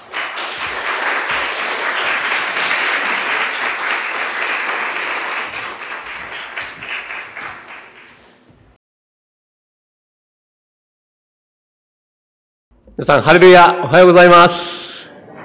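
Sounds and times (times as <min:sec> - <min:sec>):
audience applause: 0:00.0 - 0:08.3
speech: 0:13.0 - 0:15.0.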